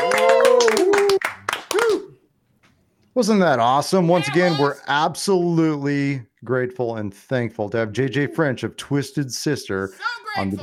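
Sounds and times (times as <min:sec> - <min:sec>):
audience applause: 0:00.0 - 0:02.1
loud voiced cheering or whooping: 0:00.0 - 0:02.1
speech: 0:03.2 - 0:10.6.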